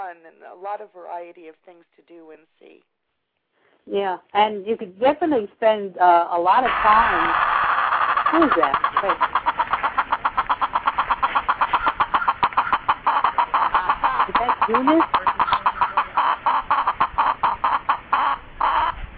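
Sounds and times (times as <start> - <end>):
speech: 0.1 - 3.0, 3.8 - 7.5, 8.3 - 9.5, 14.7 - 15.5
chicken clucking: 6.7 - 19.1.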